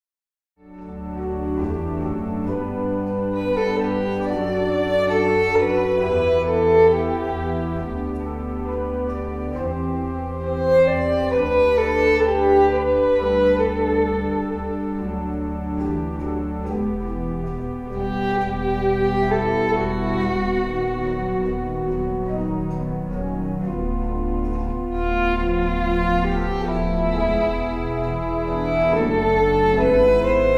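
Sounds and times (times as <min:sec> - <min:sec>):
violin: 0:00.7 - 0:30.5.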